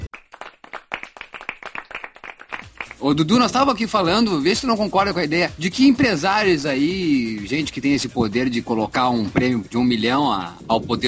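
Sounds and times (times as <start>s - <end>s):
studio audience applause: 0.0s - 3.2s
speech: 3.0s - 11.0s.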